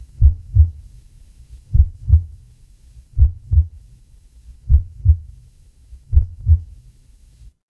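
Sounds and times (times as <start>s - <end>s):
horror heartbeat: 0.2s - 0.9s, 1.5s - 2.4s, 3.1s - 3.9s, 4.5s - 6.8s.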